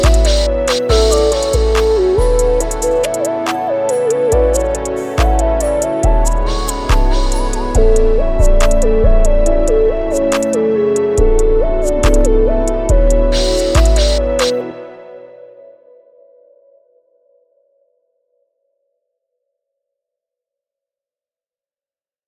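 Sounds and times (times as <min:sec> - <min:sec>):
plugg beat loop: 0:00.0 - 0:14.6.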